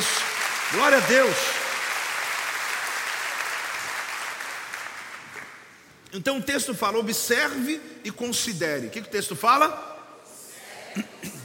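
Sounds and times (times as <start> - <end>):
audience applause: 0.0 - 5.6
speech: 0.7 - 1.6, 6.1 - 9.9.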